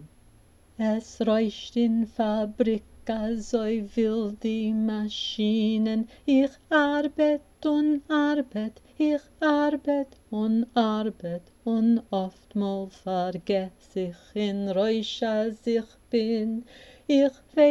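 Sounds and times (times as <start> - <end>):
tenor singing: 0.8 - 17.6.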